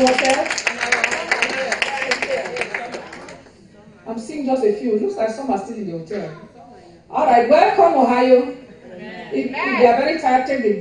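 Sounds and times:
speech: 0.0s - 0.6s, 4.4s - 10.7s
audience clapping: 0.0s - 3.5s
murmur of voices: 0.0s - 10.7s.

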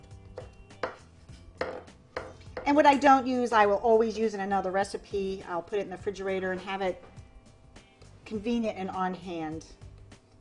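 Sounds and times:
knife chopping food: 0.3s - 2.7s
speech: 2.7s - 7.2s, 8.3s - 9.8s.

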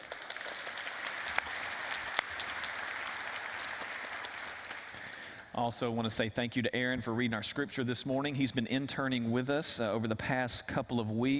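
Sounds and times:
church congregation applauding: 0.0s - 5.8s
speech: 5.6s - 11.3s.

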